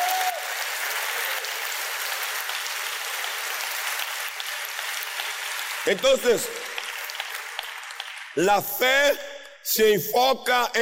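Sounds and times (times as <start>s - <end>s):
audience applause: 0.0s - 8.4s
speech: 5.8s - 6.7s, 8.4s - 10.8s.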